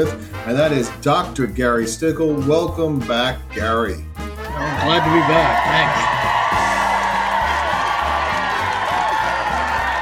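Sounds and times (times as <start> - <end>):
speech: 0.0 - 6.2
audience applause: 4.5 - 10.0.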